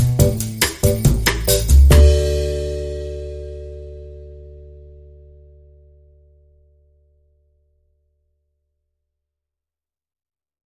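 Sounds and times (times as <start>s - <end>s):
drums: 0.0s - 3.8s
electric piano: 0.0s - 4.6s
bass: 0.0s - 8.8s.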